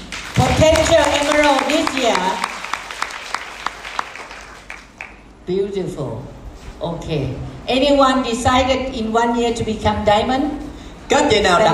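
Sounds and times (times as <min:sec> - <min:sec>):
audience applause: 0:00.0 - 0:05.2
speech: 0:00.6 - 0:02.5, 0:05.5 - 0:11.7.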